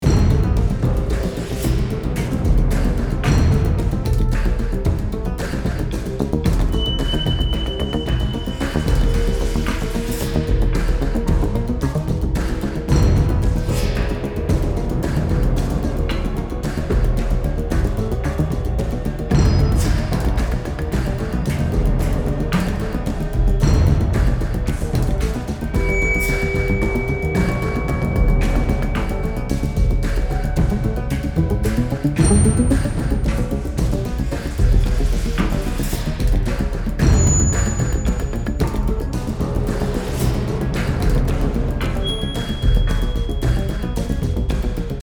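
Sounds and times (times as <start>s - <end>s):
action loop: 0.0s - 45.0s.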